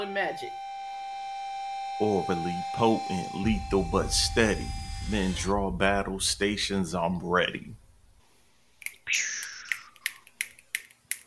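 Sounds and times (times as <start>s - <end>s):
speech: 0.0s - 0.7s, 2.0s - 7.8s, 9.1s - 9.4s
breathy hiss: 3.4s - 10.2s
crisp finger snaps: 8.8s - 11.2s.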